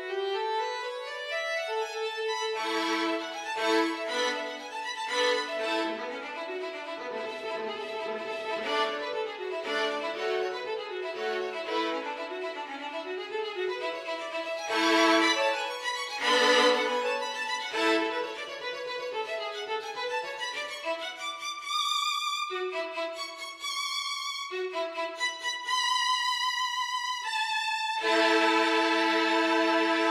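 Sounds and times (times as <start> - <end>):
solo violin: 0.0 - 30.0.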